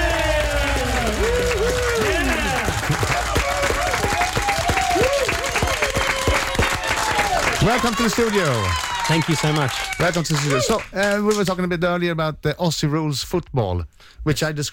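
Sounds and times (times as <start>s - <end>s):
studio audience cheering and whooping: 0.0s - 10.8s
studio audience clapping to welcome a guest: 0.0s - 11.6s
speech: 7.7s - 14.7s.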